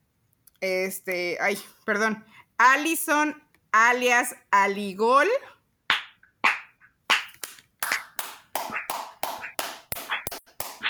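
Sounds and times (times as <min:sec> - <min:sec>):
speech: 0:00.6 - 0:05.6
hand claps: 0:07.1 - 0:10.8.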